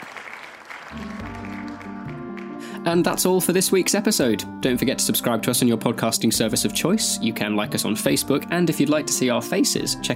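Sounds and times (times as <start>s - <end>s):
round of applause: 0.0s - 2.8s
speech: 2.8s - 10.1s.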